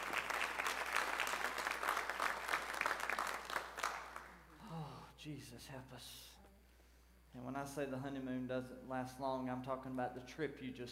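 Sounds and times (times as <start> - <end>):
crowd applauding newlyweds: 0.0 - 4.5
speech: 5.2 - 6.4, 7.3 - 10.9.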